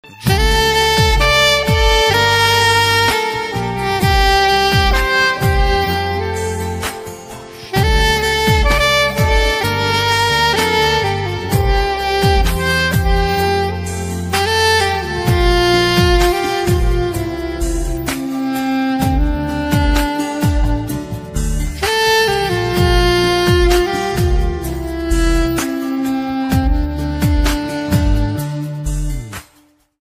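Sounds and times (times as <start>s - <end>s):
Christian ringtone music: 0.0s - 29.4s.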